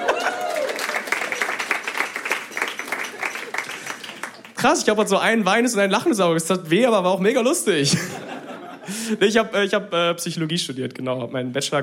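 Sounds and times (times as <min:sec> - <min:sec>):
laughter: 0:00.0 - 0:00.9, 0:07.8 - 0:09.2
audience applauding: 0:00.0 - 0:04.6
speech: 0:04.6 - 0:08.3, 0:08.9 - 0:11.8.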